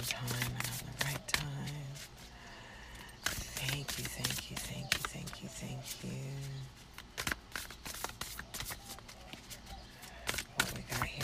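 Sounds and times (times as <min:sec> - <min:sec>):
deck of self-care oracle cards being shuffled: 0:00.0 - 0:02.3, 0:03.1 - 0:11.2
speech: 0:05.7 - 0:06.8.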